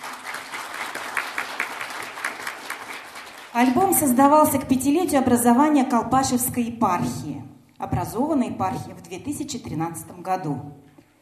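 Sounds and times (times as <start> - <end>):
crowd clapping: 0.0 - 3.8
speech: 3.6 - 10.9.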